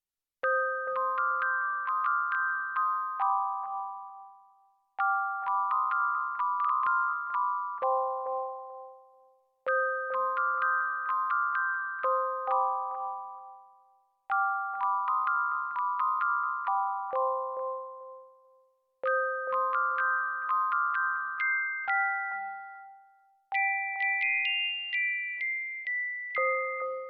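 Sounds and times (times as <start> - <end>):
small sad bells: 0.4 - 27.0.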